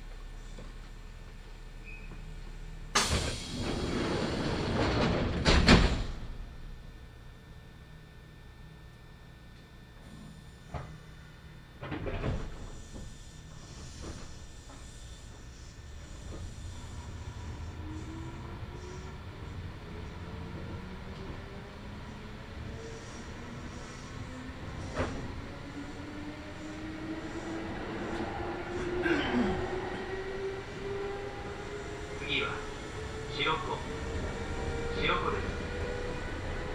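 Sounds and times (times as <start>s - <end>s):
local train rolling on rails: 2.1s - 7.0s, 11.8s - 36.7s
local train thumps and clatters: 2.9s - 6.5s, 11.8s - 16.8s, 24.8s - 25.3s.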